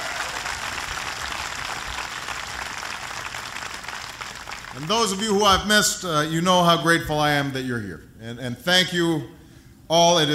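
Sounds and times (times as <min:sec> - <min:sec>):
audience applause: 0:00.0 - 0:05.3
speech: 0:04.8 - 0:10.3.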